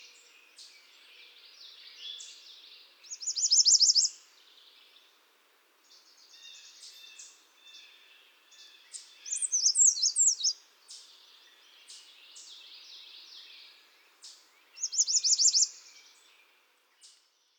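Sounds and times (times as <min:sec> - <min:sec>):
chorus of songbirds: 0:00.0 - 0:17.5.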